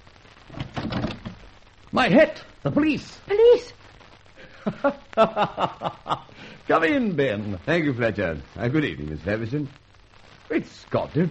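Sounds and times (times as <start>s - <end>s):
rain-like hiss: 0.0s - 11.2s
door being opened: 0.5s - 1.4s
speech: 1.9s - 3.8s, 4.6s - 9.8s, 10.5s - 11.2s
laughter: 4.5s - 6.3s.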